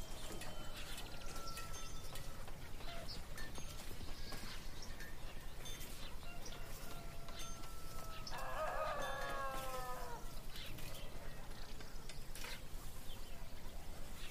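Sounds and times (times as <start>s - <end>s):
birds singing: 0.0s - 14.2s
farm animals calling: 0.0s - 14.2s
rooster-like crow: 6.2s - 10.4s.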